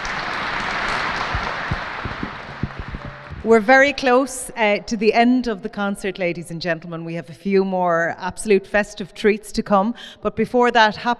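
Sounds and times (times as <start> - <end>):
audience applause for concert musicians: 0.0 - 3.5
speech: 3.4 - 11.1.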